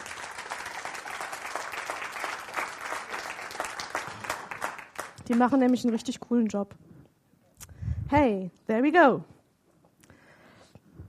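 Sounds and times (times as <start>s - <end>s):
crowd applauding: 0.0s - 6.1s
speech: 5.3s - 6.9s, 8.1s - 9.3s.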